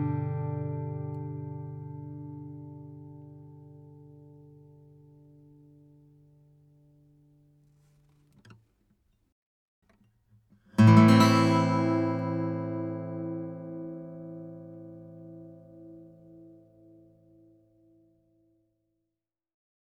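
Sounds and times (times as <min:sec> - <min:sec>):
guitar recorded with a Line Audio CM3 microphone: 0:00.0 - 0:07.5, 0:10.7 - 0:18.4.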